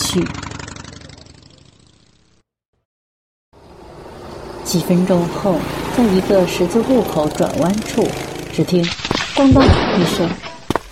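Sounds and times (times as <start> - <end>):
motorcycle engine starting: 0.0 - 2.4, 3.6 - 8.9
speech: 0.2 - 0.4, 4.7 - 10.4.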